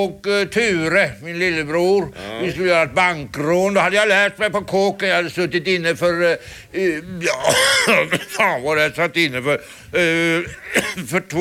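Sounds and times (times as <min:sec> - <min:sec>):
speech: 0:00.0 - 0:11.3
man clearing his throat: 0:07.0 - 0:08.6, 0:10.2 - 0:11.2
man with a cold coughing: 0:07.2 - 0:08.6, 0:10.2 - 0:11.2.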